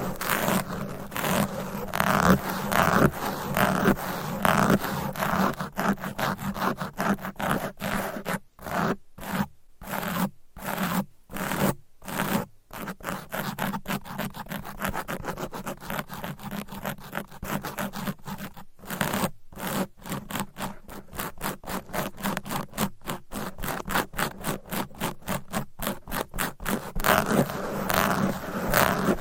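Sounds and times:
fast aggressive scratching on a microphone: 0:00.0 - 0:29.1.

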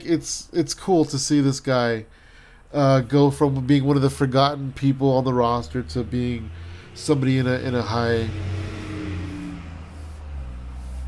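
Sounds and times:
speech: 0:00.0 - 0:08.6
big truck driving by: 0:05.5 - 0:11.0.

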